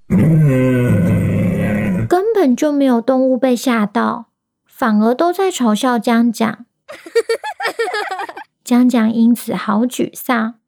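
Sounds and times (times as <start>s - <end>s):
voice imitating a toothless tiger's weak roar: 0.1s - 2.1s
speech: 2.5s - 10.6s
laughter: 6.9s - 8.4s.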